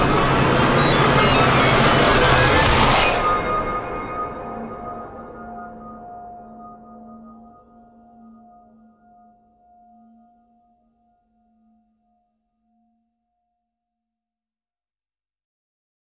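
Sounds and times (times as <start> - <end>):
drones: 0.0 - 8.4.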